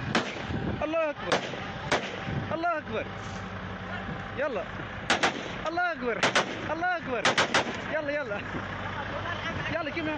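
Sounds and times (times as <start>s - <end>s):
gunfire during militant ambush on convoy: 0.1s - 0.5s, 1.3s - 2.2s, 5.1s - 7.9s
speech: 0.8s - 3.6s, 4.4s - 10.1s.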